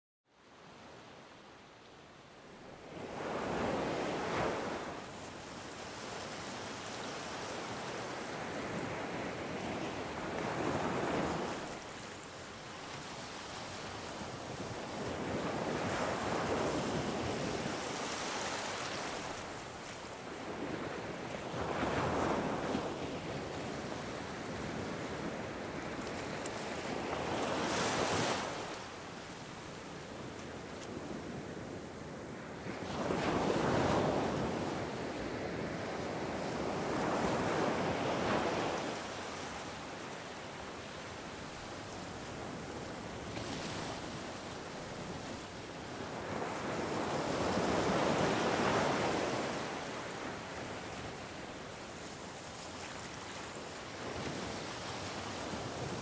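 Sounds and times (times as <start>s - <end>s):
ocean: 0.3s - 56.0s.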